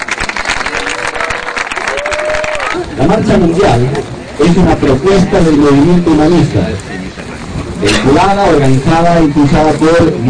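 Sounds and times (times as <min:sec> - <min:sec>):
audience applause at a World March for peace event: 0:00.0 - 0:03.0
speech: 0:03.0 - 0:07.2, 0:07.8 - 0:10.2.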